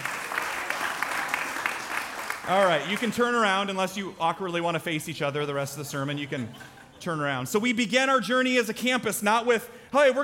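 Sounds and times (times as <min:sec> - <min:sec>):
group applause: 0:00.0 - 0:03.5
speech: 0:02.4 - 0:10.2
laughter: 0:05.7 - 0:07.6.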